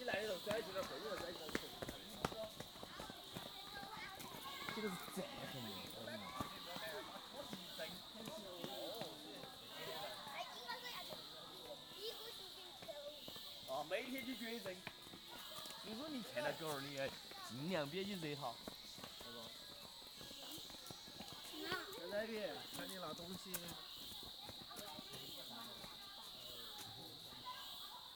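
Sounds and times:
children in the wild in China: 0:00.0 - 0:28.1.

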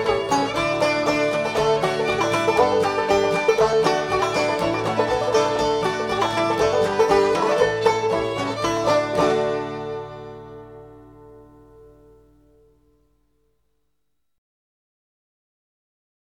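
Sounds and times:
polka music: 0:00.0 - 0:12.8.

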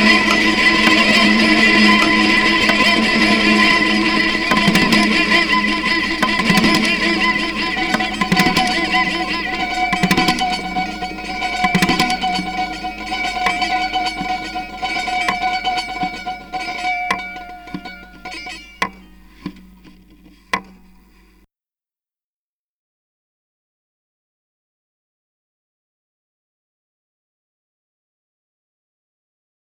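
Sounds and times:
toy guitar: 0:00.0 - 0:21.4.

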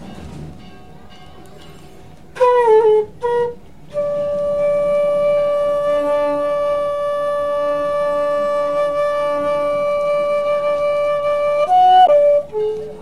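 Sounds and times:
flute: 0:02.3 - 0:13.0.

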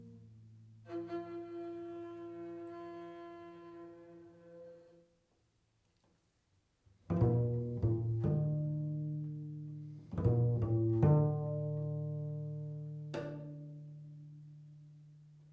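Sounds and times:
prepared double bass: 0:07.1 - 0:15.5.

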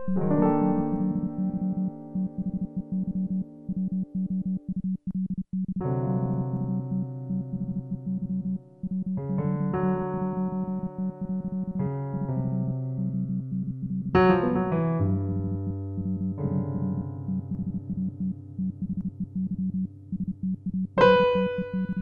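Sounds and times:
piano: 0:00.0 - 0:22.0.

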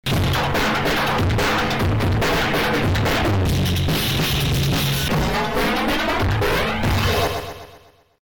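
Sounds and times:
drum: 0:00.0 - 0:07.8.

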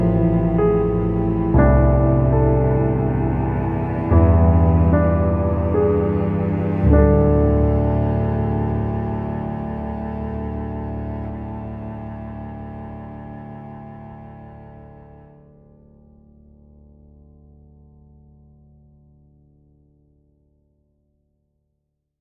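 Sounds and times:
cello: 0:00.0 - 0:16.6
sad lament piano: 0:00.0 - 0:16.6.

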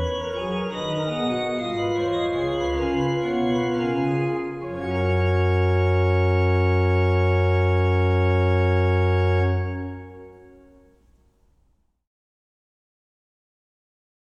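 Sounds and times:
organ music: 0:00.0 - 0:11.0.

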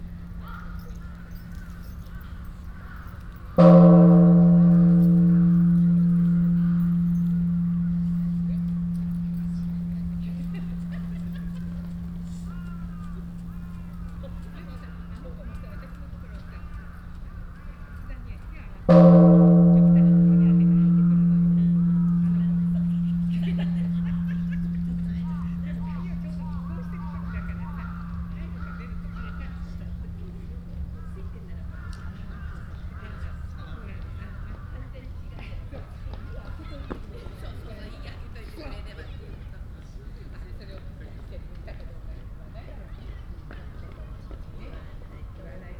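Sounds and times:
bells of time ringing in Ueno: 0:00.0 - 0:16.4, 0:18.9 - 0:32.4.

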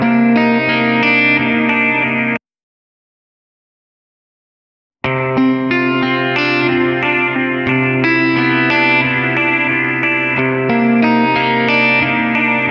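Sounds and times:
emotive jangly delayed guitar alone: 0:00.0 - 0:02.4, 0:05.1 - 0:12.6.

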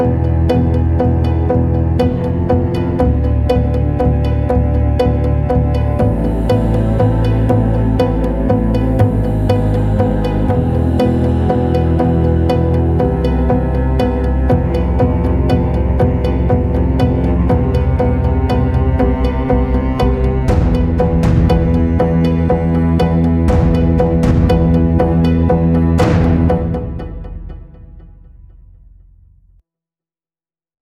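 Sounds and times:
tense dramatic string music: 0:00.0 - 0:29.4
drums: 0:08.0 - 0:29.0.

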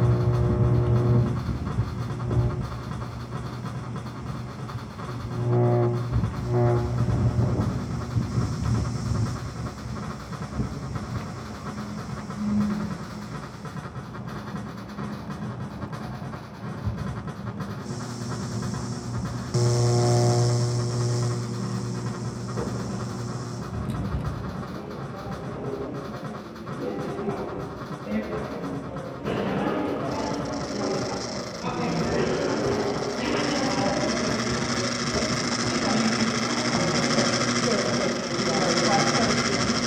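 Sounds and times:
noise from two amplifiers: 0:00.0 - 0:13.7, 0:17.7 - 0:24.8, 0:29.2 - 0:39.8
field recordings: 0:00.0 - 0:39.8.

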